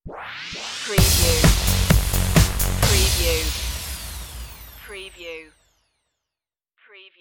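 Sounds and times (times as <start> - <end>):
twilight music stinger: 0.1 - 5.0.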